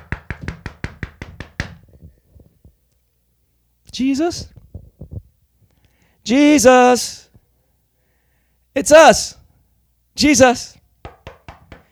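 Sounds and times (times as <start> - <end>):
knocking on a closed door: 0.0 - 2.1, 11.0 - 11.9
speech: 4.0 - 4.6, 6.3 - 7.2, 8.8 - 9.4, 10.2 - 10.8.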